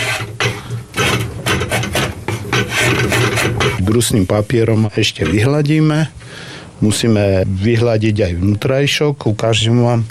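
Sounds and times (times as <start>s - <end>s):
drawknife shaving excess wood: 0.0s - 3.8s
speech: 3.9s - 10.1s.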